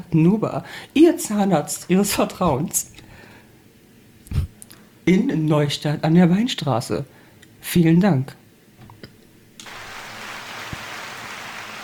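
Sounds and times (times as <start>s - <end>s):
speech: 0.1s - 3.0s, 5.1s - 8.4s
applause: 9.6s - 11.8s.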